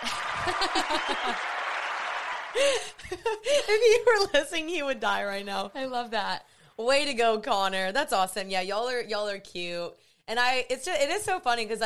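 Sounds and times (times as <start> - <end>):
crowd applause and cheering sound effect: 0.0 - 3.2
laughter: 0.0 - 4.4
speech: 0.5 - 1.6, 2.5 - 11.8.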